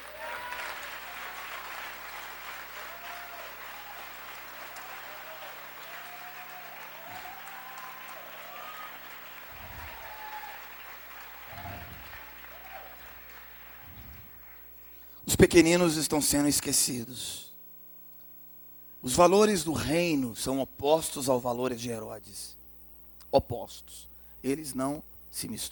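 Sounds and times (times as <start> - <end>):
audience applause: 0.0 - 15.0
speech: 15.3 - 17.4, 19.0 - 22.6, 23.3 - 25.7.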